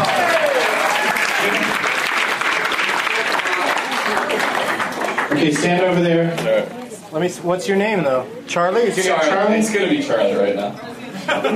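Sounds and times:
audience clapping: 0.0s - 5.9s
speech: 5.4s - 11.5s
laughter: 11.0s - 11.5s.

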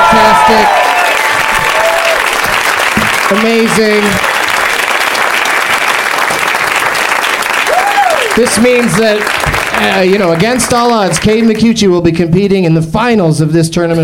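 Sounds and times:
loud sustained applause from a large audience: 0.0s - 11.6s
speech: 0.5s - 0.9s, 3.3s - 4.3s, 8.4s - 14.0s.

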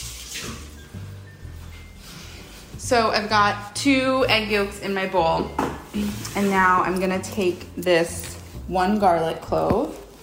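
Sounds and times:
hands washed under a running tap: 0.0s - 1.4s
speech: 2.9s - 10.0s.

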